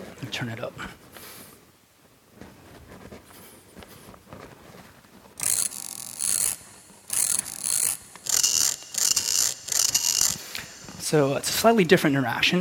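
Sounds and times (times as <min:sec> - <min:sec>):
speech: 0:00.2 - 0:01.0, 0:11.1 - 0:12.5
ratchet-like mechanical clicking: 0:05.4 - 0:11.1.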